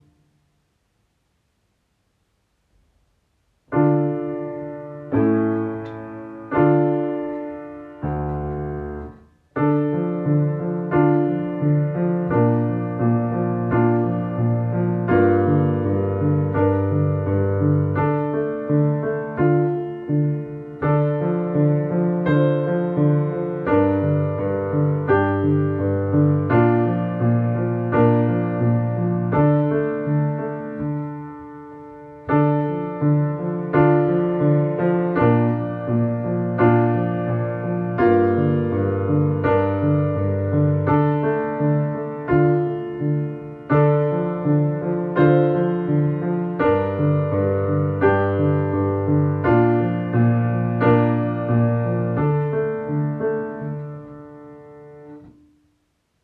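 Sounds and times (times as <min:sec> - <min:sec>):
piano: 0:00.0 - 0:56.2.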